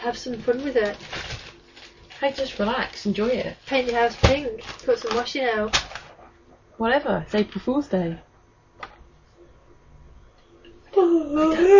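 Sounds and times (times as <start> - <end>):
speech: 0.0 - 1.4, 2.2 - 5.9, 6.8 - 8.3, 11.4 - 11.7
person yawning: 10.9 - 11.7.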